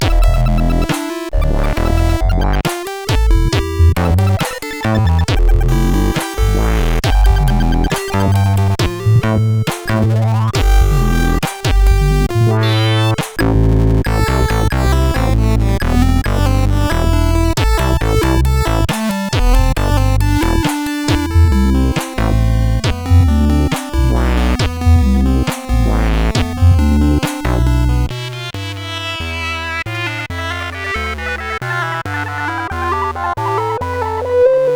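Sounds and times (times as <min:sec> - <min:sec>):
SID chiptune music on a CSG8580R5 chip: 0:00.0 - 0:34.7.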